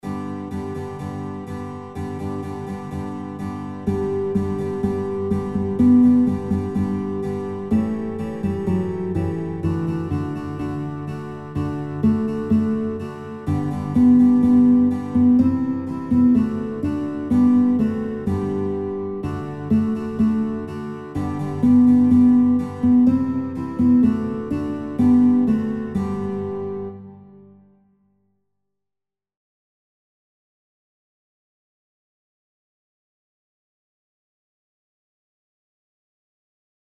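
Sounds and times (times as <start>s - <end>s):
guitar: 0.0s - 28.0s.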